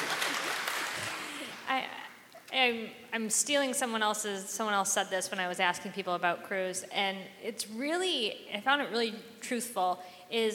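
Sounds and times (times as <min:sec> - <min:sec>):
people clapping: 0:00.0 - 0:01.7
speech: 0:01.8 - 0:10.5.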